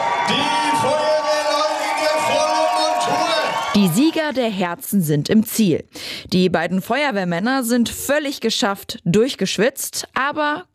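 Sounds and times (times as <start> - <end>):
crowd cheering and applauding at marathon finish: 0.0 - 4.6
speech: 0.3 - 0.6, 3.8 - 10.7.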